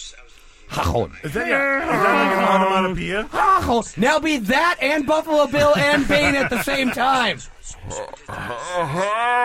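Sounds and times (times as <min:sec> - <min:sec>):
speech: 0:00.8 - 0:09.4
person imitating a donkey bray: 0:01.4 - 0:03.8, 0:07.8 - 0:09.4
laughter: 0:05.5 - 0:09.4.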